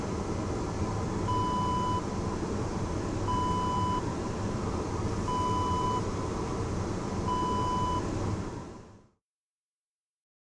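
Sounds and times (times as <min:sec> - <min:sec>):
airplane toilet ambience: 0:00.0 - 0:09.0.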